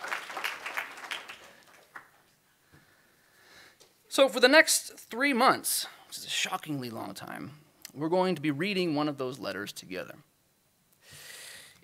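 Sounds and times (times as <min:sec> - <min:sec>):
audience applause: 0:00.0 - 0:02.2
speech: 0:04.2 - 0:10.3.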